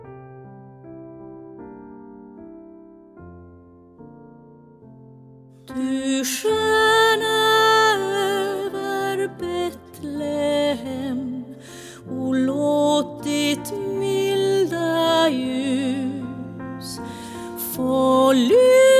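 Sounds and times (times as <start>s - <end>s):
soprano singing: 5.7s - 18.9s.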